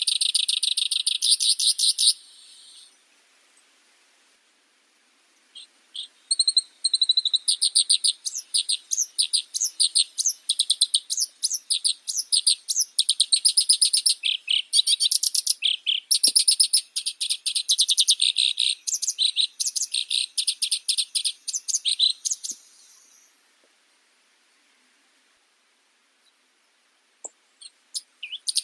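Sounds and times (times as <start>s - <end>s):
black-browed reed warbler Acrocephalus bistrigiceps singing: 0.0s - 3.0s, 5.5s - 23.4s, 27.2s - 28.6s.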